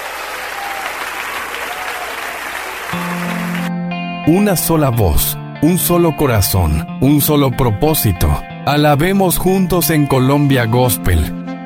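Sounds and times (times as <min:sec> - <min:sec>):
congregation applause during a gospel worship service: 0:00.0 - 0:03.8
speech: 0:04.3 - 0:11.4.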